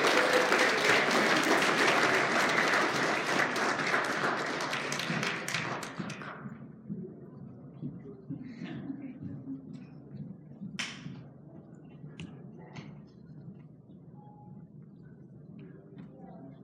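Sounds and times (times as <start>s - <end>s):
crowd applauding: 0.0s - 6.4s.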